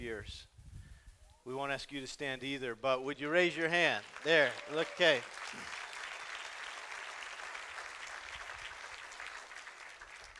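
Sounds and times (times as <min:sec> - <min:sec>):
speech: 0:00.0 - 0:00.5, 0:01.5 - 0:05.8
audience clapping: 0:03.2 - 0:10.3.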